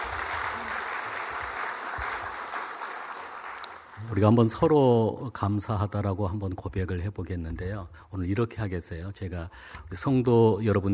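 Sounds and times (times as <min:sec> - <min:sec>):
audience applause: 0:00.0 - 0:04.2
speech: 0:04.0 - 0:10.9.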